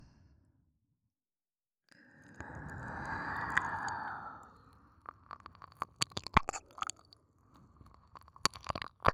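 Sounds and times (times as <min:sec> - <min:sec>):
ASMR ear licking sounds: 0:02.3 - 0:09.1.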